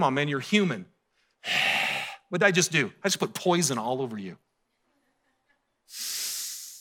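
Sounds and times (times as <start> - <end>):
speech: 0.0 - 4.5, 5.9 - 6.1
deep breath in: 1.1 - 2.3, 5.9 - 6.7.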